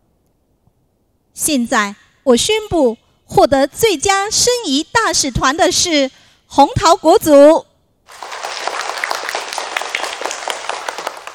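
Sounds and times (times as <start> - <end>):
speech: 1.4 - 8.2
class of students applauding the winning group: 8.1 - 11.3.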